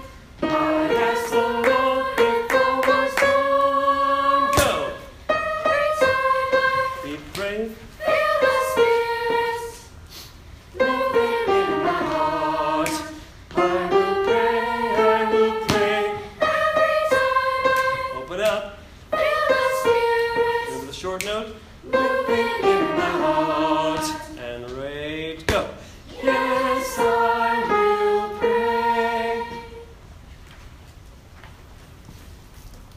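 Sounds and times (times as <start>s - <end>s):
children's choir singing a spiritual with soprano: 0.0s - 9.9s, 10.7s - 18.4s, 19.1s - 21.2s, 21.8s - 24.5s, 26.1s - 30.0s.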